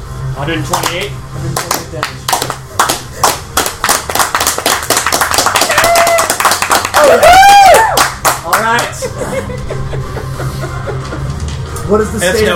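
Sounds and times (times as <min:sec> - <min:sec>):
speech: 0:00.4 - 0:03.3, 0:07.0 - 0:10.2, 0:11.9 - 0:12.5
slow clap: 0:00.7 - 0:09.0
laughter: 0:08.6 - 0:11.8.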